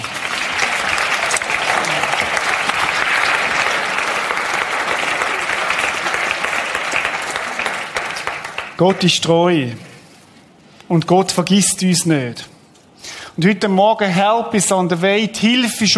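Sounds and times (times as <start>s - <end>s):
audience applause: 0.0s - 9.0s
speech: 8.8s - 9.9s, 10.9s - 12.5s, 13.4s - 15.9s.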